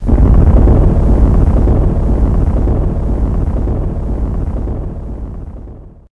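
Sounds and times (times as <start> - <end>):
rumble: 0.0 - 6.1.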